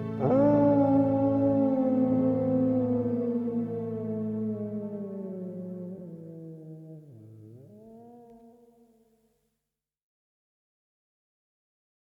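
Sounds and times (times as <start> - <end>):
wolf howling: 0.1 - 9.0.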